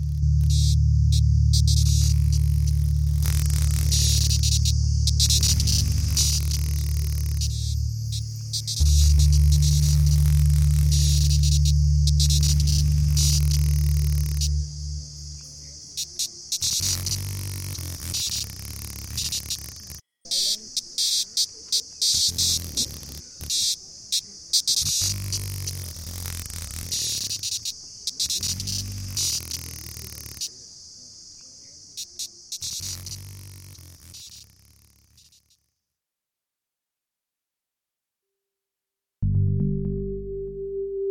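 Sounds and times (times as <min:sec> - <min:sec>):
multispecies soundscape: 0:00.0 - 0:16.0, 0:39.2 - 0:41.0.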